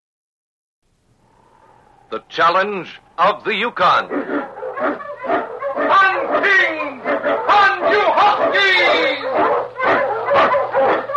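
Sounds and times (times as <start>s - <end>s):
speech: 2.1s - 5.1s
Eskimo lead sled dog barking on a snowy trail: 3.2s - 11.1s.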